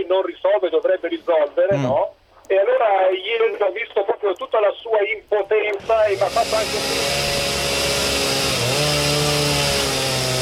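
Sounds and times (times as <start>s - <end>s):
speech: 0.0s - 7.4s
chainsaw engine running: 5.8s - 10.4s.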